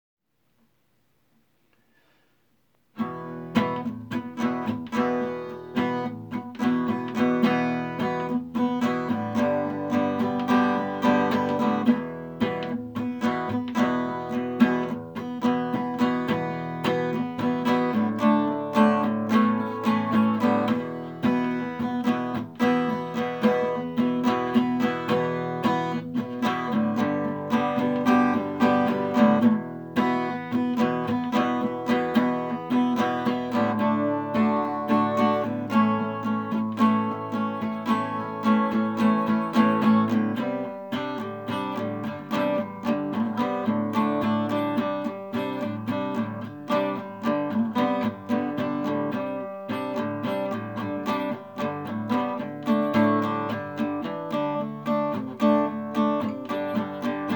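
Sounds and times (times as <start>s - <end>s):
acoustic music: 2.9s - 57.3s.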